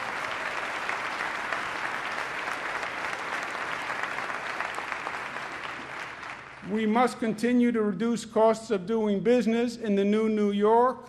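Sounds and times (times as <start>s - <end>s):
audience applause: 0.0s - 6.9s
speech: 6.7s - 11.0s.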